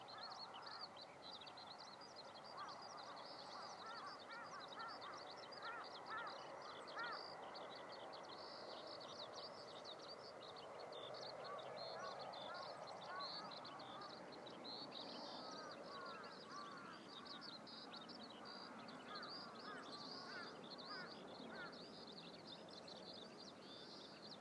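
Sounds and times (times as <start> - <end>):
Eurasian skylark song of high twittering notes and trills: 0.0 - 24.4.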